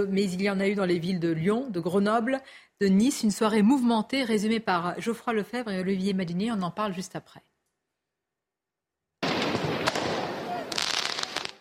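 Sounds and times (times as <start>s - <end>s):
speech: 0.0s - 7.5s
firework mortar shots during street riots: 9.2s - 11.5s.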